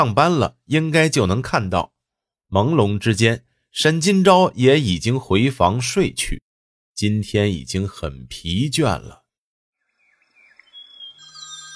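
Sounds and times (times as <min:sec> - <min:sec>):
speech: 0:00.0 - 0:01.9, 0:02.5 - 0:06.4, 0:07.0 - 0:09.2
mobile phone ringing with bright electronic ringtone: 0:10.9 - 0:11.7.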